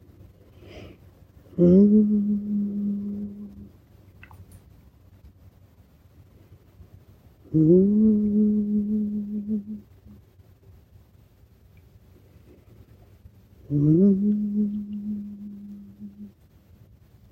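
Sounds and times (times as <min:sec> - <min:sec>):
low-pitched humming: 0:01.5 - 0:03.7, 0:07.4 - 0:10.2, 0:13.6 - 0:16.4.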